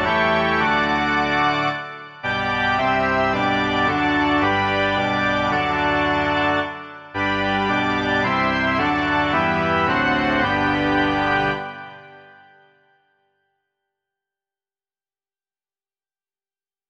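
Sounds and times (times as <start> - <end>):
organ: 0.0 - 13.0.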